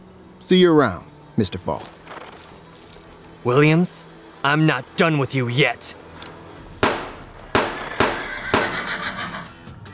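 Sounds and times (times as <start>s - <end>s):
speech: 0.4s - 2.0s, 3.4s - 6.0s
gunshots fired at a deputy: 6.8s - 8.9s.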